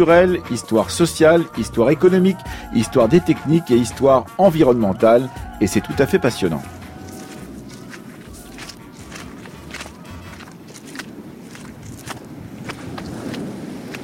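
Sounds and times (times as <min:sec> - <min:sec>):
speech: 0:00.0 - 0:06.8
distant waves: 0:00.0 - 0:14.0
footsteps on sand: 0:04.9 - 0:14.0.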